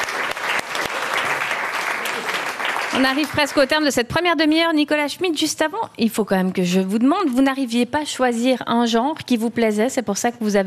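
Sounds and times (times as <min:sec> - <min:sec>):
audience applauding: 0:00.0 - 0:03.9
speech: 0:03.0 - 0:10.6.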